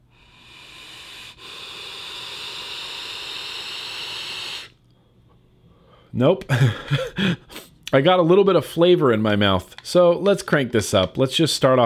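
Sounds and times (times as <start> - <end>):
vape coil sizzling: 0.2 - 4.8
speech: 6.1 - 11.8.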